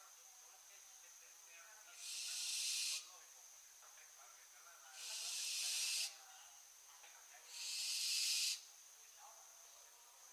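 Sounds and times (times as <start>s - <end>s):
barn owl Tyto alba screeching: 2.0s - 3.1s, 5.0s - 6.2s, 7.5s - 8.7s.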